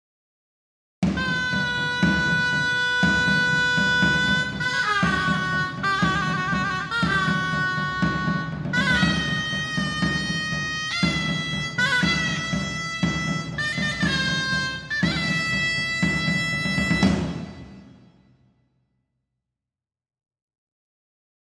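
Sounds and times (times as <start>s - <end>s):
zurna playing: 1.1s - 17.6s.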